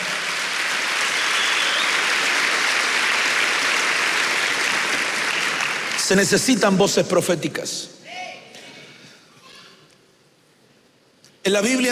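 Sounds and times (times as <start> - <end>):
audience clapping hands: 0.0 - 6.6
speech: 6.1 - 8.0, 11.5 - 11.8.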